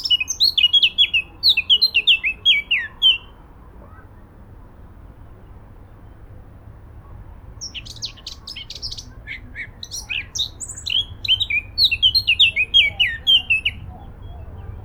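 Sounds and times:
Sylvia atricapilla singing: 0.0 - 3.3, 7.6 - 14.8.

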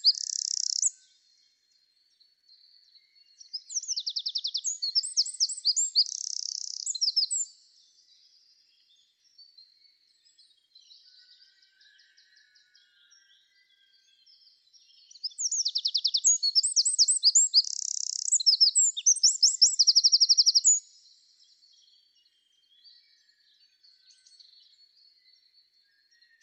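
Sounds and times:
Eurasian wren song: 0.0 - 1.2, 3.3 - 7.7, 14.9 - 21.2.

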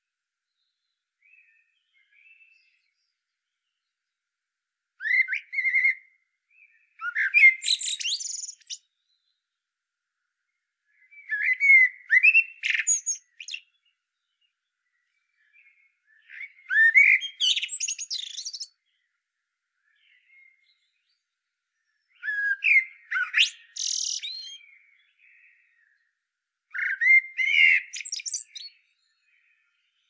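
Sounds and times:
common blackbird song: 5.0 - 9.4, 10.9 - 19.1, 19.8 - 26.1, 26.7 - 30.0.

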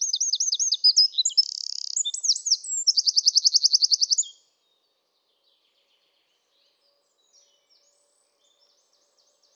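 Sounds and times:
Eurasian wren song, Troglodytes troglodytes: 0.0 - 4.4.

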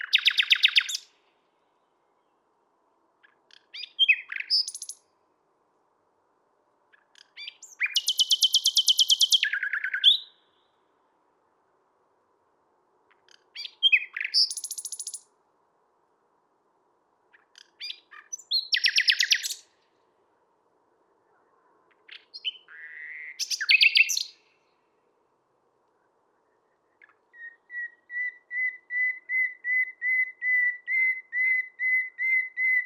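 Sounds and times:
common nightingale singing: 0.0 - 1.4, 3.2 - 5.2, 6.9 - 10.9, 13.1 - 15.3, 17.3 - 19.9, 21.1 - 24.9, 26.0 - 32.8.

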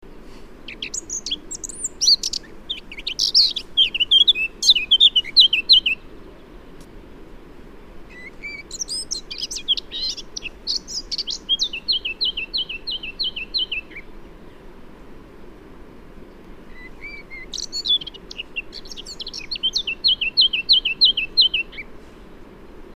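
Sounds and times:
Eurasian blackcap singing: 0.6 - 6.5, 8.1 - 14.1, 16.7 - 21.9.

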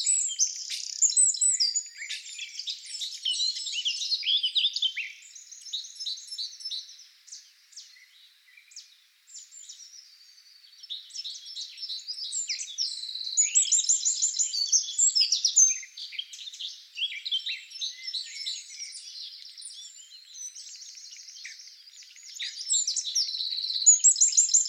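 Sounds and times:
Eurasian wren singing: 0.0 - 24.6.

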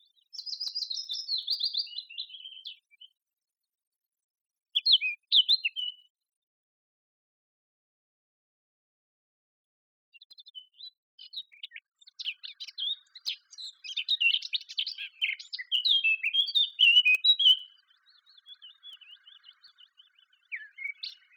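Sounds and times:
Eurasian blackcap song: 0.0 - 3.2, 4.7 - 6.2, 10.2 - 21.3.

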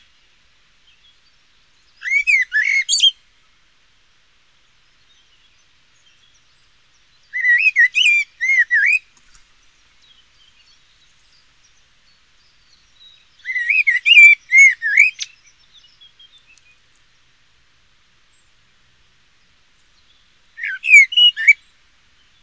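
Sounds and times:
Eurasian blackbird calls: 2.0 - 3.1, 7.3 - 9.0, 13.4 - 15.4, 20.6 - 21.6.

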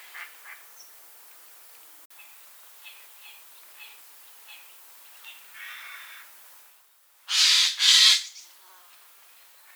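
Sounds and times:
Eurasian jay Garrulus glandarius screeching: 7.3 - 8.4.

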